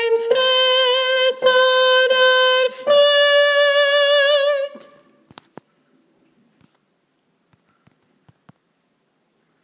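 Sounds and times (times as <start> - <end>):
soprano singing: 0.0 - 5.2.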